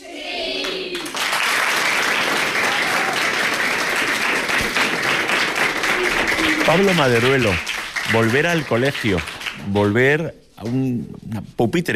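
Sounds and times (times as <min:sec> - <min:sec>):
group of children applauding: 0:00.6 - 0:09.9
speech: 0:06.7 - 0:11.9.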